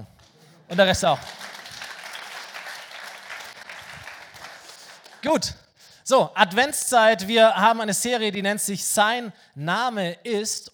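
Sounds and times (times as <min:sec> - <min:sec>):
speech: 0:00.7 - 0:01.5, 0:05.2 - 0:10.7
audience clapping: 0:00.7 - 0:05.5.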